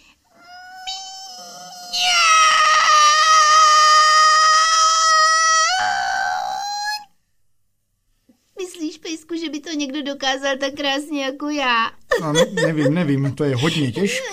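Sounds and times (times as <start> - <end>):
person imitating a cat meowing: 0.4 - 7.1
speech: 9.7 - 14.3
laughter: 12.1 - 14.3.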